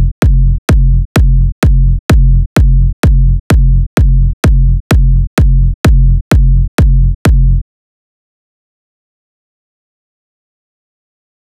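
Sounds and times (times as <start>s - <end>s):
kick drum at 128 bpm: 0.0s - 7.6s.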